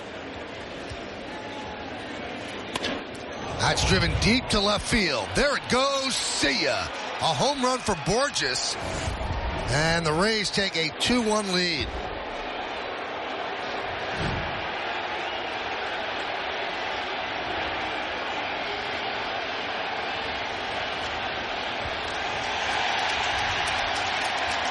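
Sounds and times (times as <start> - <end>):
stadium crowd cheering after home run: 0.0 - 24.6
speech: 3.6 - 12.1.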